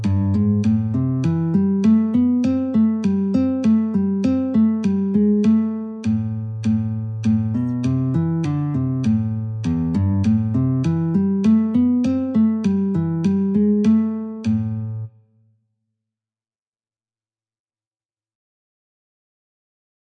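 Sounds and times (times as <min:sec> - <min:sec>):
guitar metronome at 50: 0:00.0 - 0:15.1.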